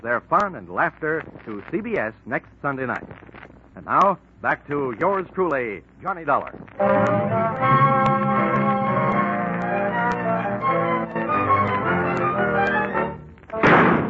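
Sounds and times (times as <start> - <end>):
speech: 0.0 - 7.9
orchestral music: 6.8 - 14.0
gunshot crashing through a door: 13.6 - 14.0.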